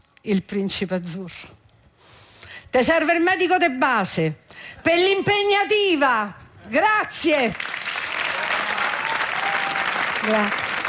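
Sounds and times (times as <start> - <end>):
speech: 0.2 - 1.6, 2.7 - 7.6, 10.2 - 10.6
audience applause: 7.6 - 10.8.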